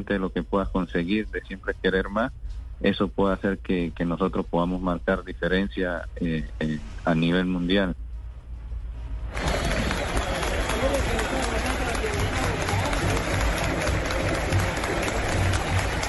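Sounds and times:
speech: 0.0 - 8.0
stadium crowd applauding a player: 9.3 - 16.0.

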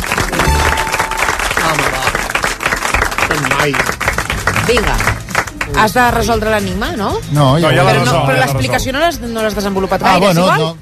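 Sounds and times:
audience applause: 0.0 - 6.1
speech: 3.3 - 4.0, 4.7 - 5.1, 5.7 - 10.8.

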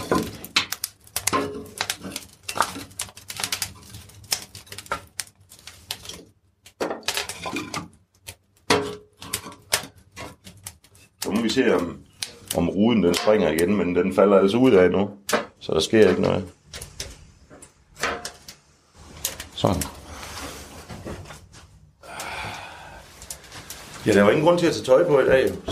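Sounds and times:
wood fire crackling: 0.0 - 25.6
speech: 11.6 - 12.0, 12.6 - 16.6, 19.6 - 20.0, 24.0 - 25.6.

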